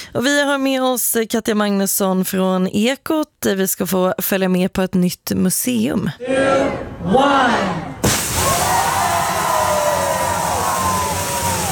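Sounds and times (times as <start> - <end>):
speech: 0.1 - 7.9
crowd cheering at a museum opening: 6.5 - 11.7
whoop or whistle: 8.4 - 11.7.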